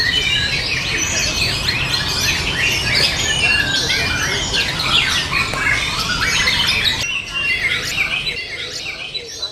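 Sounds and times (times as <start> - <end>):
White-rumped shama singing in forest: 0.0 - 9.5.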